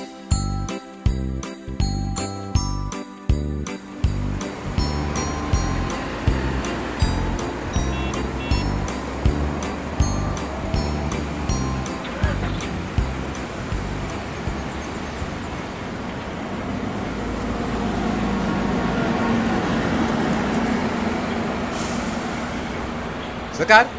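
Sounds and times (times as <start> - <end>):
steady rhythmic ticking: 0.0 - 16.4
heavy bus engine rumbling at a bus terminal: 3.5 - 23.9.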